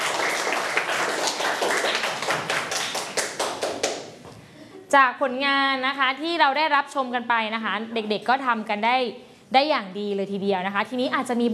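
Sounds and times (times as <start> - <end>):
class of people clapping hands: 0.0 - 4.2
speech: 4.9 - 11.5.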